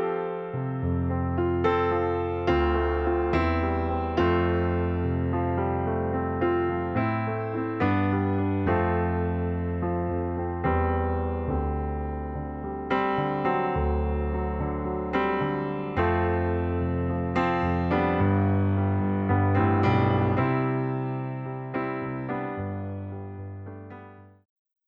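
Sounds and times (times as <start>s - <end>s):
Yamaha C7 digital piano: 0.0s - 24.4s.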